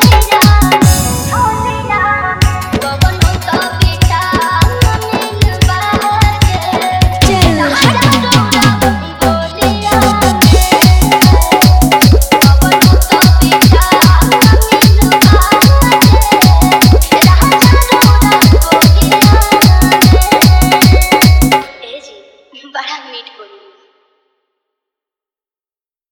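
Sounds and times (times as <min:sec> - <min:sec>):
dholak with bass mix: 0:00.0 - 0:01.5, 0:02.3 - 0:21.7.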